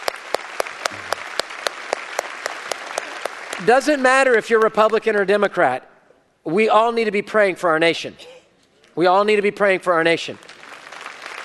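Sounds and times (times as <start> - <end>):
audience applause: 0.0 - 4.0, 10.4 - 11.4
speech: 3.6 - 8.4, 9.0 - 10.5.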